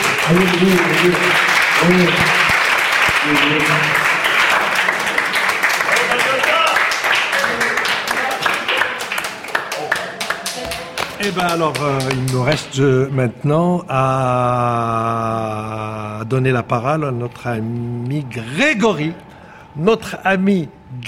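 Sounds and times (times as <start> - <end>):
scattered cheers and voices: 0.0 - 10.4
sustained audience applause: 0.0 - 12.6
speech: 0.3 - 2.4, 3.2 - 4.0, 11.2 - 21.0.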